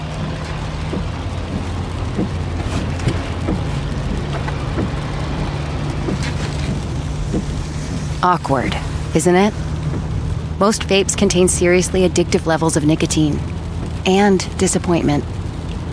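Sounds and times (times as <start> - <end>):
car interior road rumble: 0.0 - 15.9
soft taps: 0.2 - 8.1
speech: 0.9 - 1.1, 8.2 - 9.7, 10.6 - 15.3.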